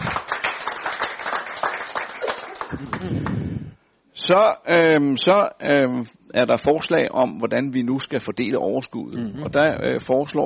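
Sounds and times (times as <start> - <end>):
audience clapping to approve: 0.0 - 3.5
speech: 4.3 - 10.4.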